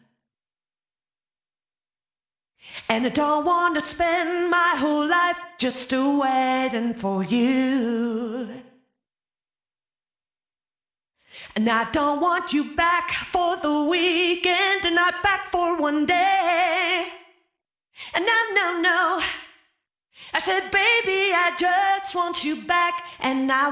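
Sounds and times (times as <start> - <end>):
person singing: 2.8 - 8.8, 11.5 - 17.2, 18.1 - 19.4, 20.4 - 23.6.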